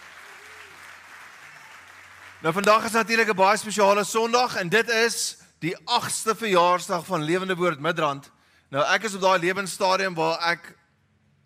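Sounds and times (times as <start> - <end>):
audience clapping: 0.0 - 3.7
speech: 2.4 - 10.8.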